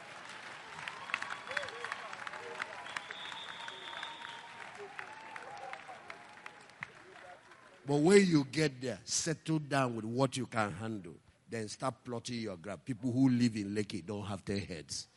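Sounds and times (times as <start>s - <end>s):
audience clapping: 0.0s - 8.4s
speech: 7.9s - 15.1s.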